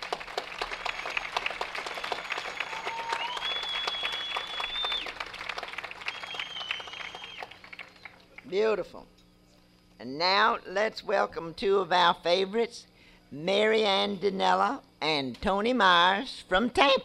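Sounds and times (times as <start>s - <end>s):
audience applause for a performer at a live show: 0.0s - 8.5s
speech: 8.5s - 9.2s, 10.0s - 17.0s.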